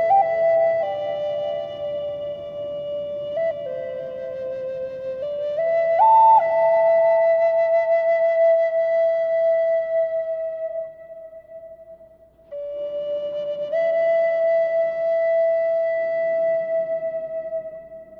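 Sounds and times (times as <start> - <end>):
nature sounds: 0.0 - 6.8
Native American flutes: 0.0 - 18.1.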